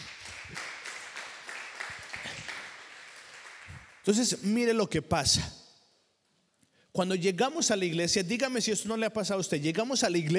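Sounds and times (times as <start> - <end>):
audience applause: 0.0 - 4.0
speech: 4.0 - 5.6, 7.0 - 10.3.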